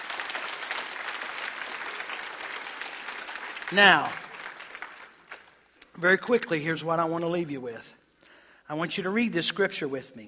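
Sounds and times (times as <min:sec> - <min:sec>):
audience clapping hands: 0:00.0 - 0:05.9
speech: 0:03.7 - 0:04.2, 0:06.0 - 0:08.0, 0:08.7 - 0:10.2.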